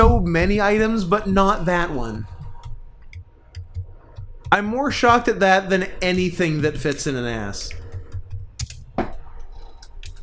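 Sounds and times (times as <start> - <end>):
speech: 0.2 - 2.3, 4.5 - 7.8
typing on a computer keyboard: 2.4 - 5.3, 6.8 - 10.2.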